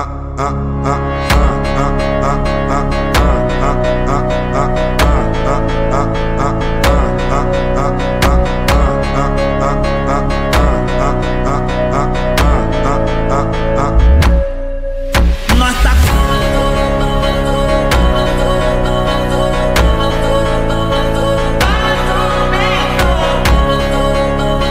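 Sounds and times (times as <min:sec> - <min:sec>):
phonk music: 0:00.2 - 0:24.6.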